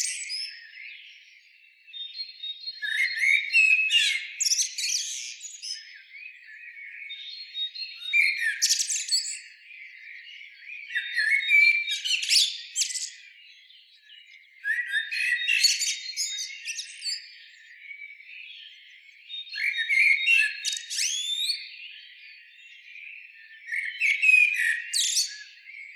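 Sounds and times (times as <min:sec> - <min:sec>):
common blackbird song: 0:00.0 - 0:25.9.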